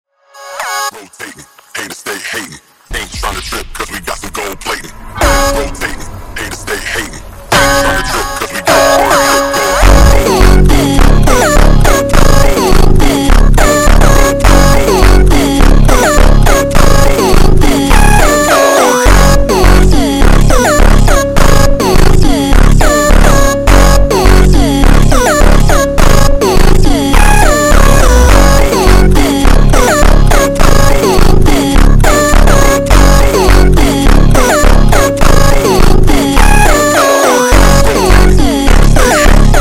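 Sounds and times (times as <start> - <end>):
super slowed funk music: 5.0 - 39.6.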